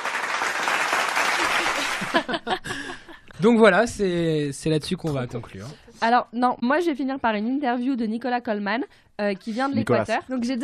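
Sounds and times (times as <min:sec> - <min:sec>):
applause jingle sound effect: 0:00.0 - 0:02.2
laughter: 0:01.3 - 0:03.4
speech: 0:02.0 - 0:02.8, 0:03.4 - 0:10.6.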